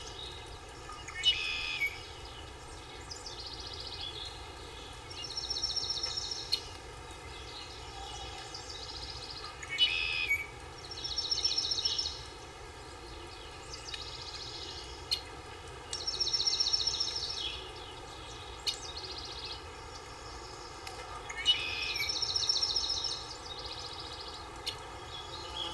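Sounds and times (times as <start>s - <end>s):
birds in a forest: 0.0s - 25.7s.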